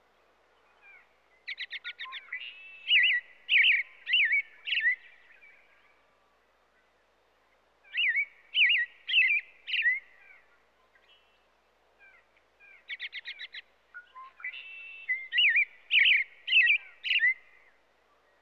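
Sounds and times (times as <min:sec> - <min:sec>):
American robin singing in the USA: 0:00.8 - 0:05.5, 0:07.9 - 0:11.4, 0:12.1 - 0:18.4.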